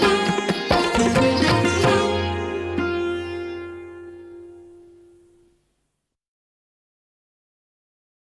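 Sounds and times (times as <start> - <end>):
instrumental lehra: 0.0 - 5.5.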